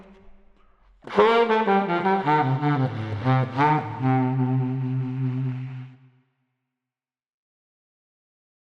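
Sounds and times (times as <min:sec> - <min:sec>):
street tenor saxophone blues lament: 0:01.0 - 0:06.1.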